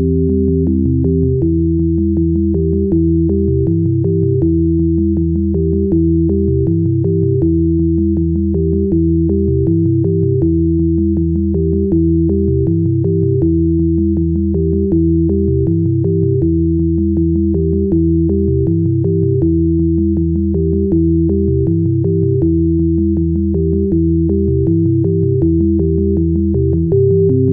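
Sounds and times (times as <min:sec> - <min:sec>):
sine waves: 0:00.0 - 0:27.5.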